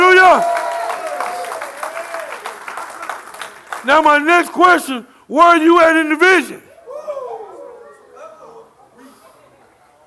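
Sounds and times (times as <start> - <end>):
audience clapping: 0.0 - 4.6
speech: 3.8 - 6.7.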